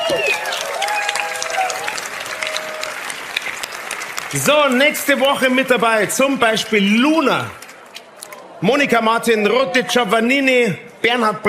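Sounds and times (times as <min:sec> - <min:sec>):
audience applause: 0:00.0 - 0:08.6
speech: 0:00.1 - 0:00.4, 0:04.3 - 0:07.6, 0:08.6 - 0:11.4.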